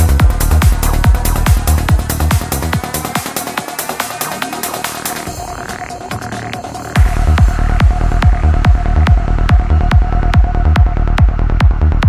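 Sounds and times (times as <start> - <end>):
psytrance music samples: 0.0 - 12.0.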